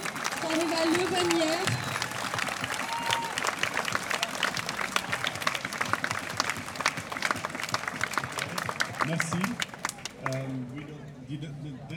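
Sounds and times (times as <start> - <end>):
audience applauding cyclists on stage in Brussels: 0.0 - 10.7
faint crowd murmur: 0.0 - 11.9
speech: 0.5 - 1.8.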